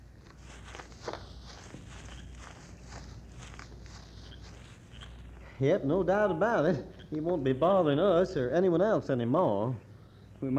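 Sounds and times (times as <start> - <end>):
footsteps of people walking through the woods: 0.0 - 5.6
speech: 5.6 - 9.8, 10.4 - 10.5.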